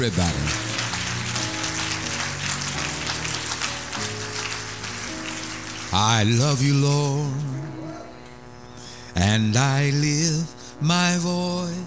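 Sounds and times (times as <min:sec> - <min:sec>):
speech: 0:00.0 - 0:00.6, 0:05.9 - 0:07.7, 0:09.2 - 0:11.8
audience clapping hands: 0:00.0 - 0:07.8.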